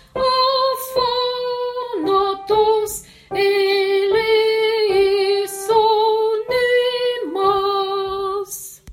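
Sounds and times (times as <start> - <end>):
Greek soprano: 0.2 - 8.7.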